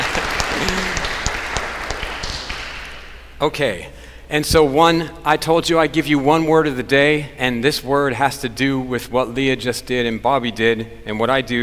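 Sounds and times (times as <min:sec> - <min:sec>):
audience applause: 0:00.0 - 0:03.1
speech: 0:03.4 - 0:11.6.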